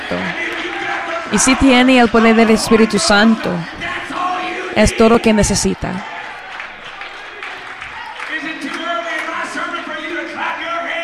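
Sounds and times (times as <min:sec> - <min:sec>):
audience applauding: 0:00.0 - 0:11.0
overlapping voices: 0:00.0 - 0:11.0
shouts and cheers: 0:00.0 - 0:11.0
speech: 0:01.3 - 0:03.8, 0:04.8 - 0:06.1.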